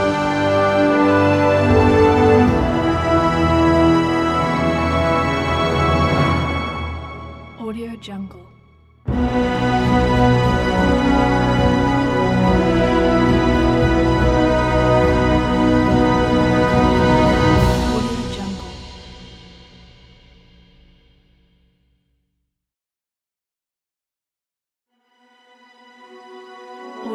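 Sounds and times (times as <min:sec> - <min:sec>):
pompous 4th of July music: 0:00.0 - 0:08.4, 0:09.1 - 0:19.6.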